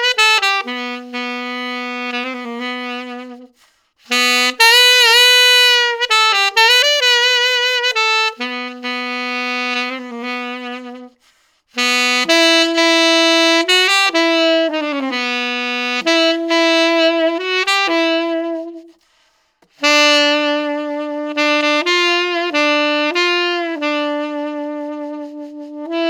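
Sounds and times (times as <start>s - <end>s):
tenor saxophone: 0.0s - 26.0s.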